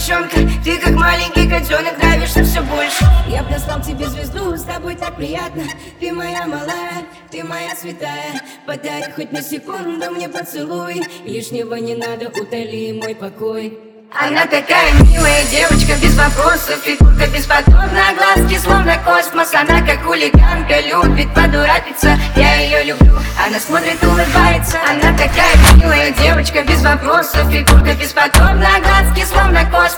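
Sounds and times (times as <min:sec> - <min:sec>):
phonk remix: 0:00.0 - 0:07.8, 0:14.8 - 0:29.5.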